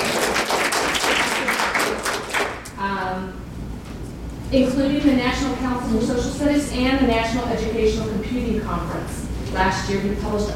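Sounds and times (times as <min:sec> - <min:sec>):
crowd applause: 0:00.0 - 0:02.7
speech: 0:04.5 - 0:10.5.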